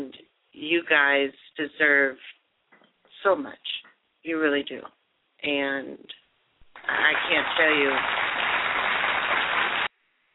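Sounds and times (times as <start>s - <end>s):
speech: 0.7s - 2.4s, 3.2s - 6.2s, 6.8s - 8.3s
applause sound effect: 6.7s - 9.9s.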